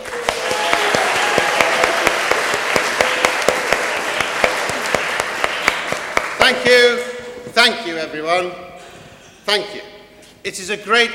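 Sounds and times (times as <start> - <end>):
audience applause welcoming a comic performer on stage: 0.0 - 6.7
speech: 7.6 - 8.7, 9.5 - 11.1.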